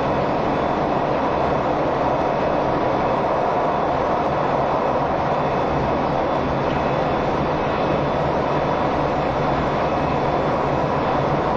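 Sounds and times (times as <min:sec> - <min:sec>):
train rumbling and rattling: 0:00.0 - 0:11.5.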